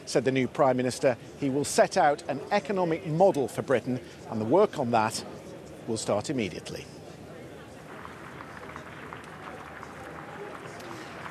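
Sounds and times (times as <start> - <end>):
speech: 0.1 - 7.0
outdoor crowd applauding: 7.8 - 11.2.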